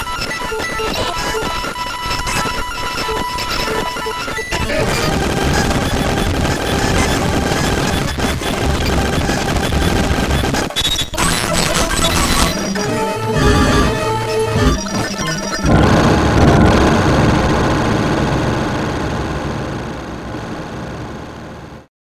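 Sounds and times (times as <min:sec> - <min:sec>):
circuit-bent Casio CT 380 keyboard: 0:00.0 - 0:21.0.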